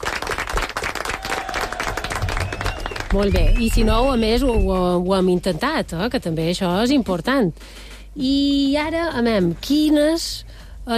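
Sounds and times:
group applause: 0:00.0 - 0:04.2
speech: 0:03.1 - 0:10.9.

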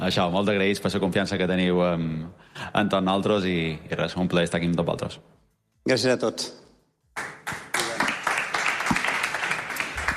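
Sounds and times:
speech: 0:00.0 - 0:06.6
audience applause: 0:07.2 - 0:10.1.

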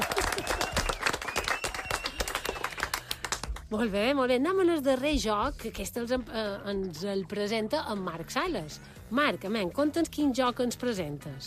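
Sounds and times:
audience applause: 0:00.0 - 0:03.6
speech: 0:03.7 - 0:11.4.

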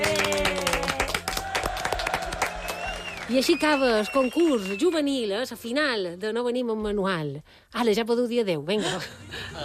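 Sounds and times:
applause: 0:00.0 - 0:05.1
speech: 0:03.3 - 0:09.6.

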